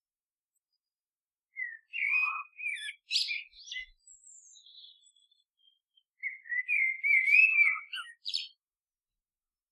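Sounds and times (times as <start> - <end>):
bird song of clear whistled slurred notes and high chirps: 1.5 - 8.6.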